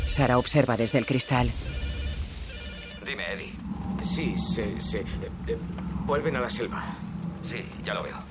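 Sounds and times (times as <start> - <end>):
speech: 0.1 - 1.7, 4.1 - 8.2
caravan door closing slowly: 3.1 - 8.2.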